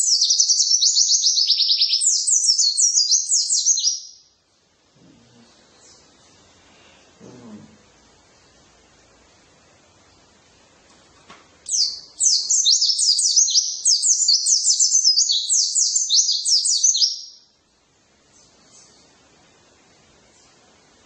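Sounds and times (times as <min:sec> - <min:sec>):
white-eye twittering song with rapid chatter: 0:00.0 - 0:04.3, 0:11.7 - 0:17.6.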